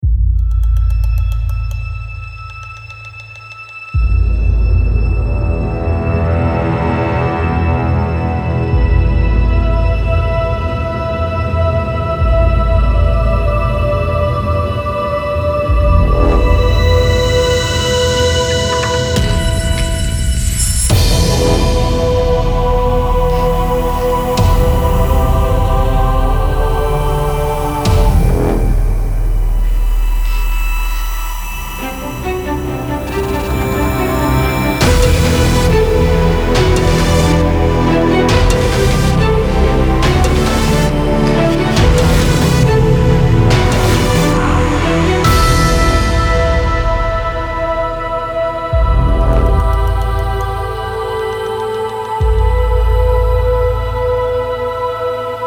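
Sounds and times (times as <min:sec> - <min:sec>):
orchestra: 0:00.6 - 0:55.4.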